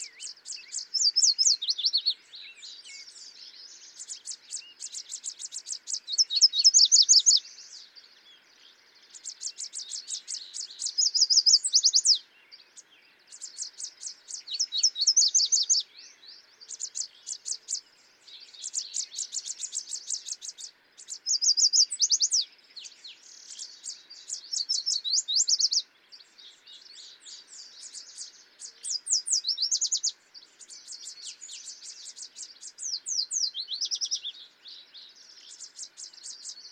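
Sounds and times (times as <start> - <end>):
birds twittering: 0.0 - 36.7
yellow warbler singing: 0.0 - 36.7.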